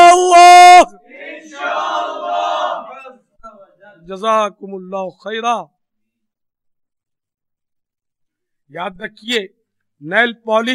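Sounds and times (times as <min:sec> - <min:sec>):
crowd at an Islamic gathering shouting a religious slogan in unison: 0:01.0 - 0:03.7
speech: 0:04.1 - 0:05.8, 0:08.7 - 0:10.7.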